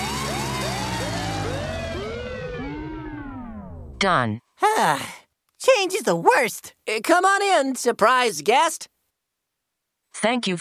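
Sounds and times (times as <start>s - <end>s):
electronic alarm siren: 0.0s - 4.0s
speech: 4.0s - 8.9s, 10.2s - 10.5s.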